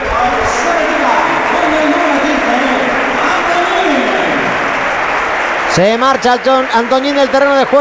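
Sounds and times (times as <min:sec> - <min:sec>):
stadium fans applauding a substituted player: 0:00.0 - 0:07.7
speech: 0:05.8 - 0:07.7.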